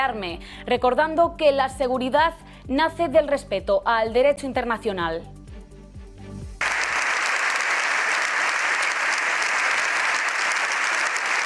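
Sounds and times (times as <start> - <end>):
speech: 0.0 - 5.4
large crowd applause after a speech: 6.6 - 11.4.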